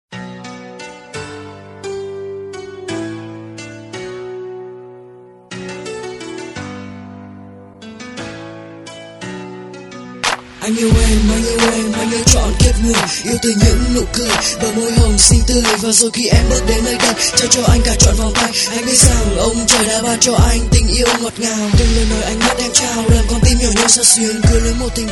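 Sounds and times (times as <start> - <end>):
rap music: 10.6 - 25.1.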